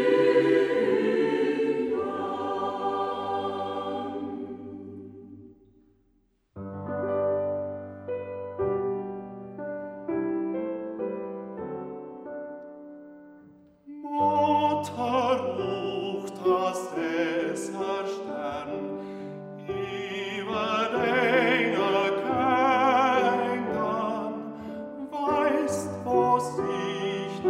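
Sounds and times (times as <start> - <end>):
piano: 0.0 - 5.5, 6.6 - 27.4
Transylvanian Saxon choir singing in the Hermannstadt dialect: 0.0 - 5.7, 14.0 - 19.0, 19.6 - 27.4
baritone singing: 13.9 - 19.0, 19.7 - 27.4.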